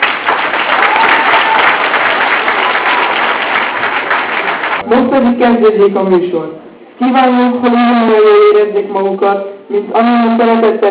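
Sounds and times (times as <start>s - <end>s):
audience applause: 0.0s - 4.8s
speech: 4.9s - 10.8s.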